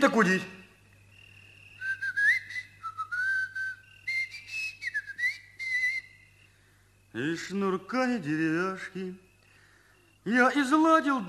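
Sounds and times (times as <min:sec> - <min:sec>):
speech: 0:00.0 - 0:00.6, 0:07.2 - 0:09.2, 0:10.2 - 0:11.2
long wavering whistle: 0:01.8 - 0:06.2.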